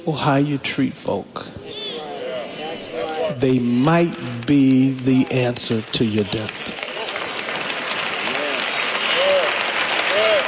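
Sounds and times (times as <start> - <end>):
speech: 0.0 - 1.6, 3.3 - 6.8
audience clapping: 3.4 - 10.4.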